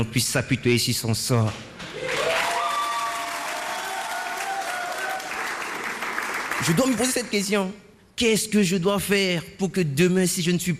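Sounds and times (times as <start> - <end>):
speech: 0.0 - 2.2, 6.6 - 10.7
audience applause: 1.9 - 7.1.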